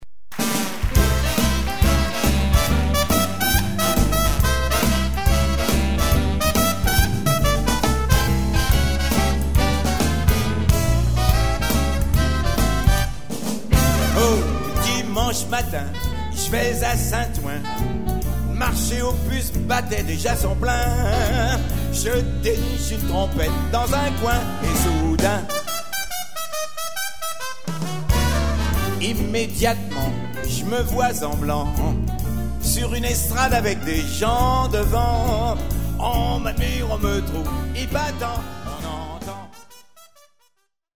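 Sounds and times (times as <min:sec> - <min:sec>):
trumpet: 0:00.3 - 0:40.8.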